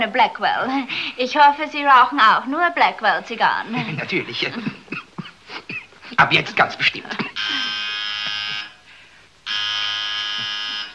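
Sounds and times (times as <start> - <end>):
speech: 0.0 - 4.8, 6.2 - 7.7
laughter: 3.7 - 8.7
telephone ringing: 7.4 - 8.8, 9.5 - 10.9.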